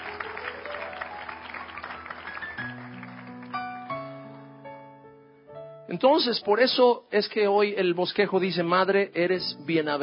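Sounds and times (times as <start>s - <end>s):
audience applause: 0.0s - 4.2s
speech: 5.9s - 10.0s.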